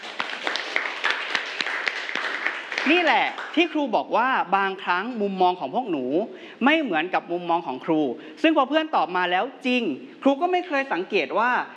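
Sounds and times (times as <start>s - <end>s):
schoolchildren clapping for a classmate in a classroom: 0.0s - 3.7s
speech: 2.8s - 11.7s.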